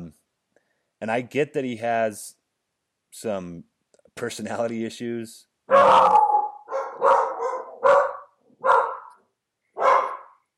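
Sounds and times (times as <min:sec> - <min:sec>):
speech: 0:01.0 - 0:02.4, 0:03.1 - 0:06.2
dogs barking: 0:05.7 - 0:09.2, 0:09.8 - 0:10.4.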